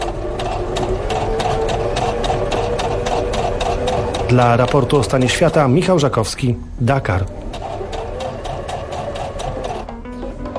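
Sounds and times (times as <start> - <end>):
sewing machine running: 0.0 - 6.1, 7.1 - 9.9
speech: 4.3 - 7.4.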